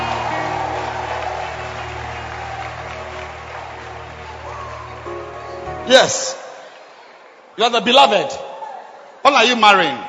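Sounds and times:
audience clapping: 0.0 - 6.9
speech: 5.9 - 6.4, 7.6 - 8.5, 9.2 - 10.0.

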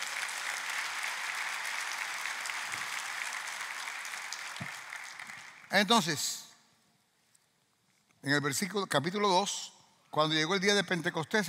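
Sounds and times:
audience applause: 0.0 - 6.0
speech: 5.7 - 6.4, 8.2 - 11.4.

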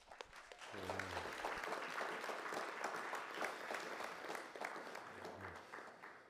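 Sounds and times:
crowd applauding: 0.0 - 6.2
faint low voice: 0.6 - 1.6, 4.9 - 5.8.

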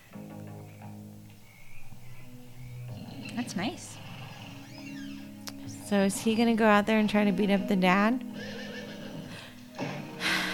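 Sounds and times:
horses neighing and whinnying in a barn: 2.7 - 6.5, 8.3 - 10.2
speech: 3.4 - 4.0, 5.9 - 8.6.

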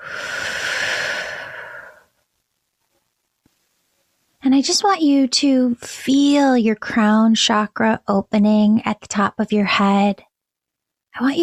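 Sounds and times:
deep breath in and out during a guided prayer and relaxation: 0.0 - 2.1
speech: 4.6 - 10.3, 11.2 - 11.4.

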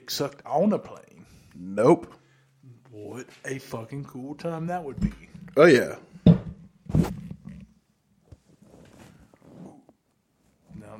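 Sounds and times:
speech: 0.1 - 2.2, 2.9 - 6.1
loud fart: 6.9 - 7.5.

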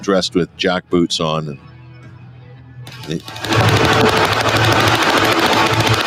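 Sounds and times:
speech: 0.0 - 1.7, 3.1 - 4.8
prop machine gun firing blanks on stage at a concert in Berlin: 2.9 - 6.0.

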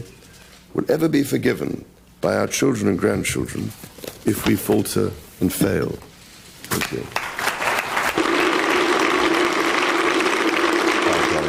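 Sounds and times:
speech: 0.0 - 6.1, 6.7 - 7.2
standing ovation applause after a speech: 7.2 - 11.4.

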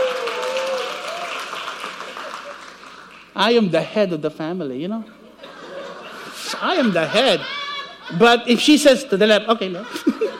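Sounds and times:
person cheering: 0.0 - 1.3, 6.8 - 8.2
church audience applause: 0.0 - 3.3
speech: 3.4 - 5.2, 6.6 - 10.3
laughter: 5.4 - 8.7, 9.5 - 10.3.

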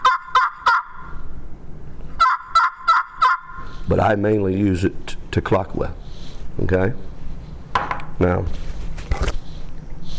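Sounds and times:
turkey gobble call device blown: 0.0 - 1.2, 2.2 - 3.8
speech: 3.9 - 6.0, 6.6 - 7.1, 8.2 - 8.7.

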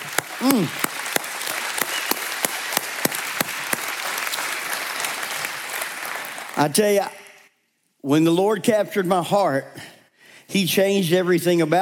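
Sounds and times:
audience applause and cheering: 0.0 - 6.8
speech: 0.4 - 0.9, 6.6 - 7.2, 8.0 - 9.9, 10.5 - 11.8.

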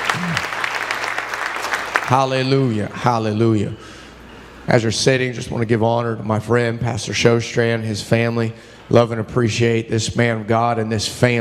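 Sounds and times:
audience clapping: 0.0 - 2.5
speech: 2.1 - 4.0, 4.7 - 11.3.

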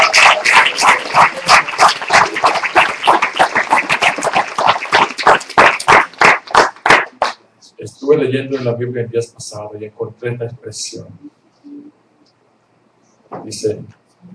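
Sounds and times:
applause: 0.0 - 7.4
speech: 8.2 - 11.4, 13.5 - 14.0.

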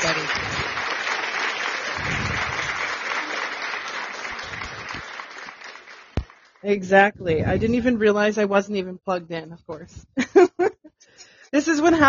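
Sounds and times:
round of applause: 0.0 - 6.7
speech: 6.6 - 10.7, 11.5 - 12.0.

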